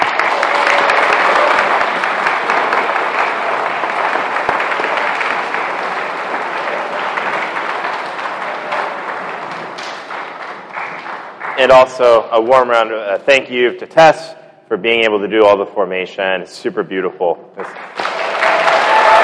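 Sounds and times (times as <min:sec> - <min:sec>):
crowd applause: 0:00.0 - 0:12.7, 0:17.6 - 0:19.2
speech: 0:11.6 - 0:17.9.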